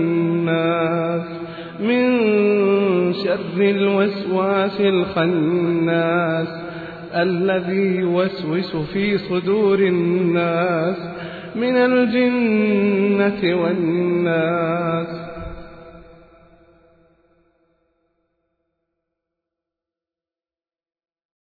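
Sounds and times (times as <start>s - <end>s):
person reciting: 0.0s - 16.0s.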